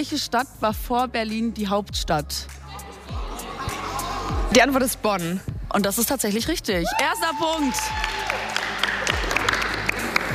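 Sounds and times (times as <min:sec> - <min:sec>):
speech: 0:00.0 - 0:03.2, 0:04.5 - 0:08.6
pupils cheering and clapping at a school geography quiz: 0:06.8 - 0:10.3.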